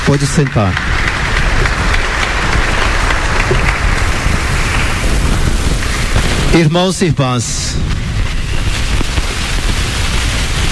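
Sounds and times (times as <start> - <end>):
audience applause for couples: 0.0 - 6.6, 8.7 - 10.7
speech: 0.1 - 1.0, 6.6 - 8.0.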